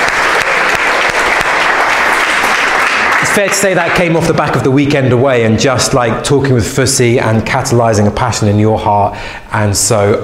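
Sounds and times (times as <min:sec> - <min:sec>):
round of applause: 0:00.0 - 0:04.5
speech: 0:03.4 - 0:10.2.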